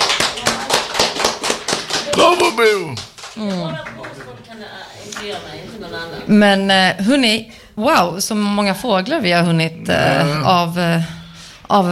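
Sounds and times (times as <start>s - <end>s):
hands clapping: 0.0s - 4.5s
speech: 2.2s - 11.9s.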